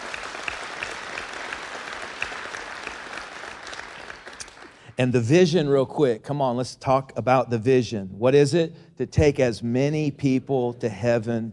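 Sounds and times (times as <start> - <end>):
audience hand clapping: 0.0 - 5.0
speech: 5.0 - 11.5.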